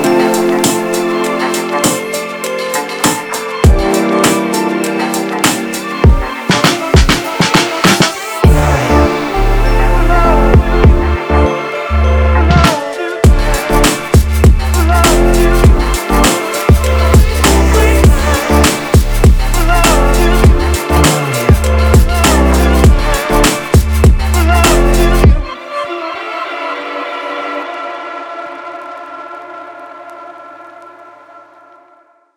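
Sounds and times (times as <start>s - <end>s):
street beat music: 0.0s - 25.5s.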